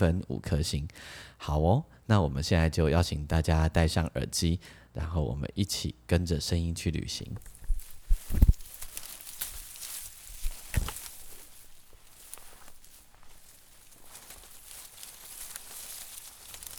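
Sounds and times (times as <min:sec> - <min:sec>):
speech: 0:00.0 - 0:07.5, 0:08.3 - 0:08.6
soft rustling and scraping of leaves and soil: 0:07.4 - 0:16.7
weeds being pulled up by hand: 0:07.4 - 0:16.7.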